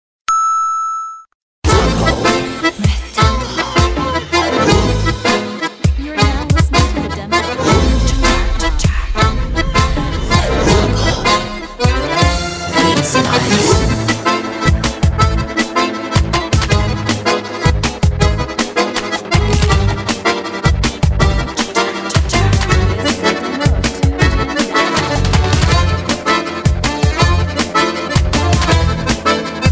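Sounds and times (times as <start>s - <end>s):
bayan accordion tango: 1.7s - 29.7s.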